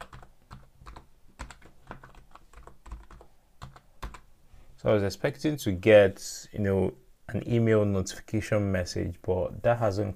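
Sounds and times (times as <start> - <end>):
computer keyboard keys clicking as password is typed: 0.0 - 4.3
speech: 4.8 - 10.1.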